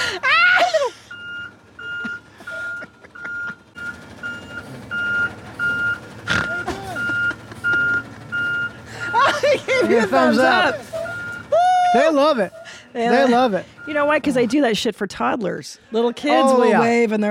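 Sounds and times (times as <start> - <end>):
laughter: 0.0 - 1.1, 1.8 - 3.8, 6.3 - 13.6
garbage truck low engine rumble: 0.0 - 17.2
garbage truck reversing alarm beeps: 1.1 - 9.2, 11.0 - 11.5, 13.2 - 14.8
speech: 9.9 - 10.9, 11.9 - 17.2.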